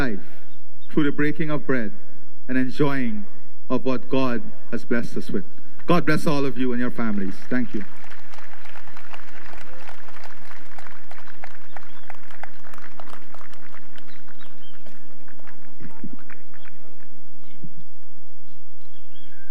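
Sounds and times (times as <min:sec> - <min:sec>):
speech: 0:01.0 - 0:08.0
audience applause: 0:07.6 - 0:17.1.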